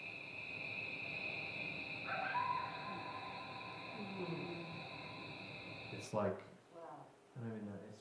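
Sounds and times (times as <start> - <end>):
coyote howling with echo: 0.0 - 6.0
crickets chirping: 0.0 - 6.4
speech: 4.2 - 4.7, 5.9 - 6.5, 7.4 - 8.0.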